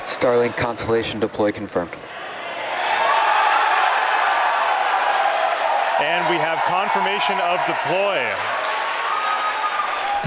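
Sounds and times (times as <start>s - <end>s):
speech: 0.2s - 2.3s, 6.0s - 8.6s
team cheering after satellite deployment: 2.2s - 10.2s
team clapping after satellite deployment: 3.0s - 10.2s.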